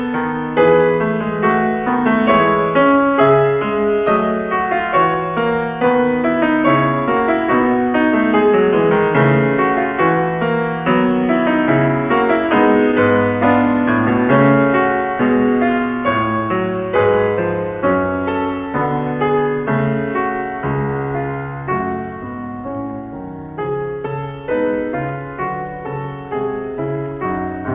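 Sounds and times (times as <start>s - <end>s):
harpsichord fugue in E major: 0.0s - 27.7s.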